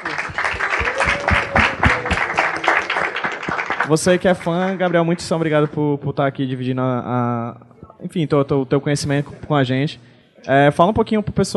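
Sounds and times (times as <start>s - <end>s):
audience applause: 0.0s - 5.7s
speech: 3.9s - 11.5s.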